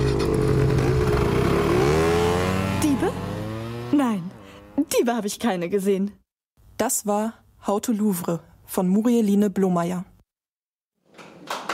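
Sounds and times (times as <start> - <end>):
motor scooters revving and driving off: 0.0 - 4.9
speech: 5.1 - 6.2, 6.8 - 10.1.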